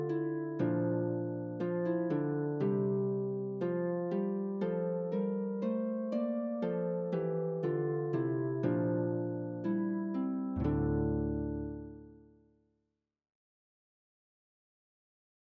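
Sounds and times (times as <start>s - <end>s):
harp carol in D minor: 0.0s - 12.3s.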